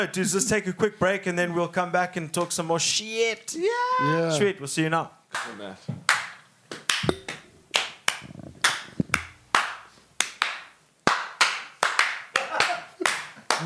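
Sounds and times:
speech: 0.0 - 6.1
small group clapping: 5.3 - 13.6.

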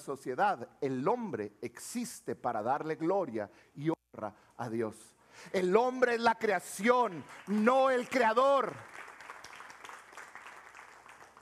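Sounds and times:
speech: 0.0 - 9.0
audience clapping: 6.8 - 11.4.

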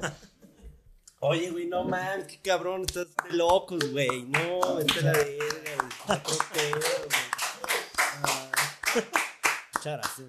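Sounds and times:
speech: 0.0 - 0.3, 1.2 - 7.2, 9.0 - 9.2, 9.8 - 10.2
laughter: 0.0 - 0.6, 4.3 - 9.4
applause: 3.2 - 10.2.

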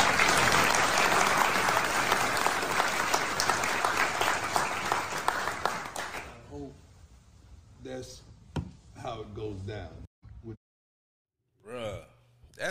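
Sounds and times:
crowd applause: 0.0 - 6.4.

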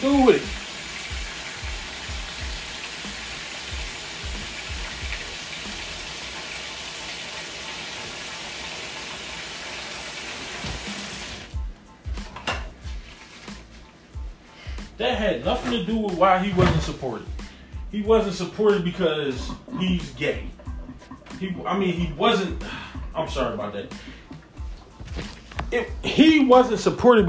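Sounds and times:
speech: 0.0 - 0.6, 15.3 - 20.6, 21.4 - 24.2, 25.7 - 27.2
running water while hands are washed: 0.0 - 11.6, 15.4 - 23.8.

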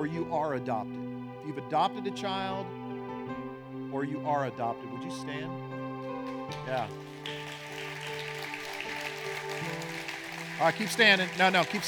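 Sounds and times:
speech: 0.0 - 2.8, 3.9 - 5.6, 6.5 - 7.4, 10.6 - 11.8
crowd clapping: 6.0 - 11.8.

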